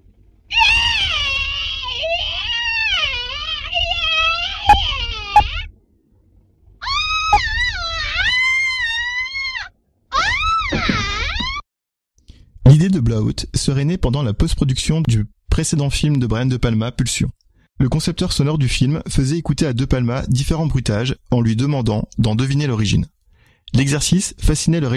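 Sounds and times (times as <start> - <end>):
long shrill screams for shower scene take: 0.5 - 5.7, 6.8 - 11.6
speech: 13.3 - 24.9.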